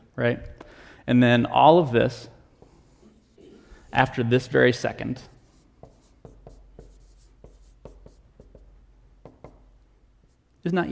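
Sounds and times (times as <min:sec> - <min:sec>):
speech: 0:00.2 - 0:02.4, 0:03.9 - 0:05.3, 0:10.6 - 0:10.9
marker drawing a timeline on a board: 0:05.3 - 0:10.4.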